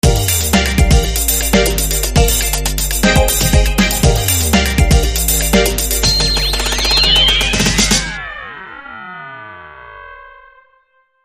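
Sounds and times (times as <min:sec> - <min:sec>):
breakbeat drums: 0:00.0 - 0:08.6.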